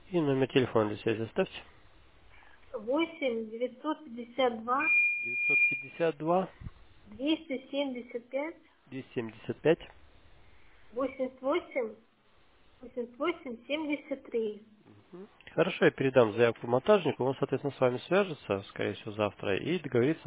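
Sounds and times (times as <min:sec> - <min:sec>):
speech: 0:00.1 - 0:01.8, 0:02.8 - 0:10.0, 0:10.9 - 0:12.0, 0:12.8 - 0:20.2
alarm-like beeping in the flat: 0:04.8 - 0:06.1.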